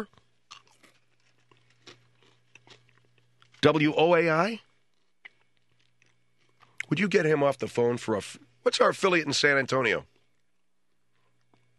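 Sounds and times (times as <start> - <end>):
speech: 0.0 - 0.2, 3.6 - 4.7, 6.9 - 10.1
man chewing food: 0.0 - 3.6, 4.6 - 6.9, 10.0 - 11.7
low steady hum: 0.0 - 11.7.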